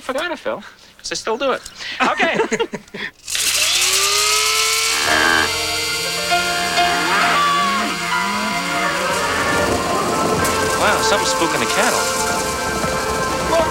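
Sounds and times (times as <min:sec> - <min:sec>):
speech: 0:00.1 - 0:03.5, 0:10.8 - 0:12.2
laughter: 0:01.8 - 0:03.1
small battery-operated electric coffee bean grinder whirring: 0:03.2 - 0:13.6.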